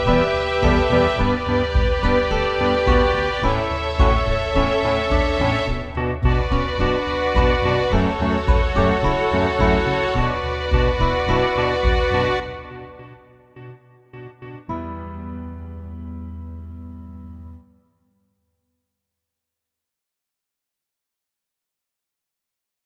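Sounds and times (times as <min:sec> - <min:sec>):
royalty free commercial music: 0:00.0 - 0:18.0.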